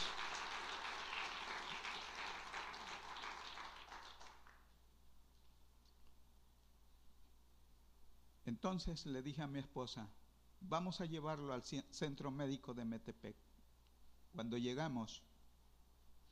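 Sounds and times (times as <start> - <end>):
audience applauding: 0.0 - 4.6
speech: 8.5 - 13.4, 14.3 - 15.3.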